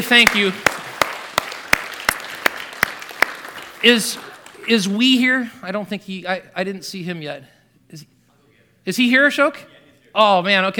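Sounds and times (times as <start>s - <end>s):
speech: 0.0s - 0.8s, 3.8s - 8.1s, 8.8s - 10.7s
hands clapping: 0.0s - 5.0s.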